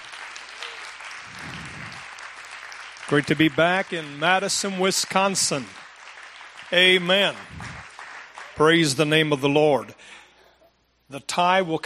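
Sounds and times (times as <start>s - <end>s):
audience applauding: 0.0s - 8.9s
speech: 3.1s - 5.8s, 6.7s - 7.7s, 8.6s - 10.2s, 11.1s - 11.8s.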